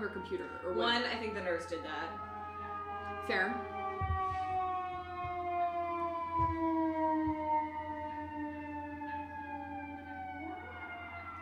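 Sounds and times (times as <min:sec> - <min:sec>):
speech: 0:00.0 - 0:02.3, 0:03.2 - 0:04.4, 0:06.4 - 0:07.6
fire engine siren wailing: 0:00.0 - 0:11.4
low rumbling thumps: 0:02.2 - 0:07.8.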